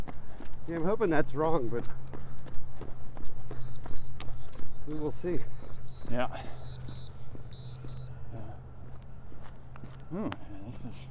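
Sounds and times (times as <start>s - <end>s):
speech: 0.7s - 2.1s, 4.9s - 6.6s, 10.1s - 11.0s
electronic alarm beeps: 3.5s - 8.2s.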